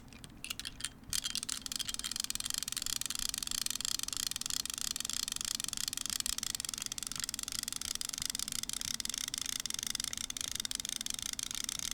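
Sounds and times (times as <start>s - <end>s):
fishing reel: 0.5s - 11.9s.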